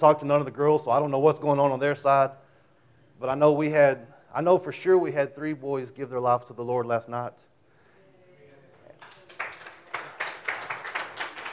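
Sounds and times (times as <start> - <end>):
speech: 0.0 - 2.4, 3.2 - 7.5
crowd applause: 9.0 - 11.5.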